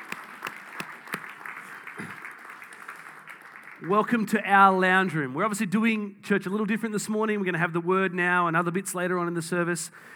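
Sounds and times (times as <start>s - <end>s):
church congregation applause welcoming first-time visitors in a lounge room: 0.0s - 4.4s
speech: 3.8s - 10.1s.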